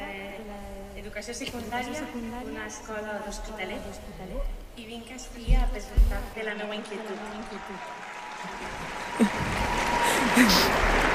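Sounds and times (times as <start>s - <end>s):
speech: 1.1s - 11.1s
audience applause: 6.5s - 11.1s.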